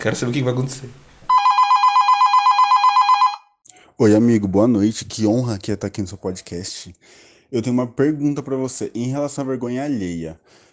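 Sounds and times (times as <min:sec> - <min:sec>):
speech: 0:00.0 - 0:01.1, 0:04.0 - 0:10.7
telephone bell ringing for an incoming call: 0:01.3 - 0:03.6.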